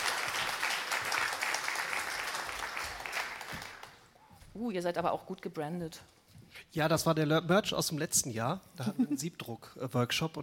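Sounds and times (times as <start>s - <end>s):
audience applause: 0.0s - 4.1s
speech: 4.6s - 6.2s, 6.8s - 10.4s.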